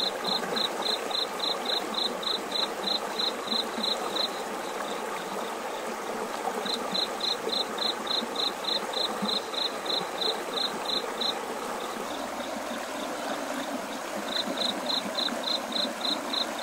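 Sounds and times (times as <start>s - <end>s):
water stream: 0.0s - 16.6s.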